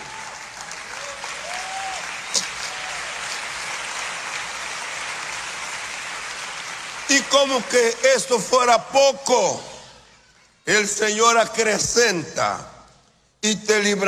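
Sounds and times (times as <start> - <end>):
audience applause: 0.0 - 8.0
speech: 7.1 - 9.7, 10.6 - 12.7, 13.4 - 14.0.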